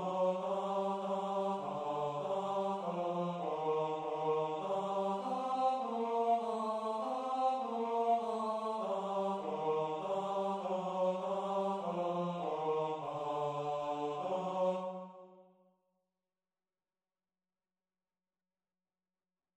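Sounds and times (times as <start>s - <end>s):
tenor singing: 0.0s - 15.1s.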